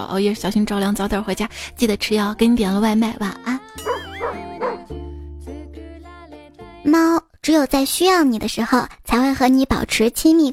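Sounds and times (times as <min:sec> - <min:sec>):
speech: 0:00.0 - 0:03.9, 0:06.8 - 0:10.5
dog yelping and barking: 0:03.9 - 0:04.9.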